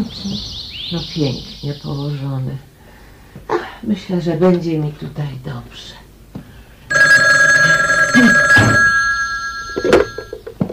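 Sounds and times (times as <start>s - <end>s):
speech: 0.0s - 2.7s, 3.5s - 6.0s
telephone bell ringing: 6.9s - 10.4s.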